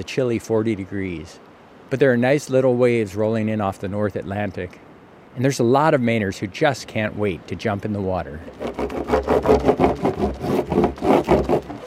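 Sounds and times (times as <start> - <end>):
speech: 0.0 - 11.1
surfboard being rubbed with wax: 8.5 - 11.8.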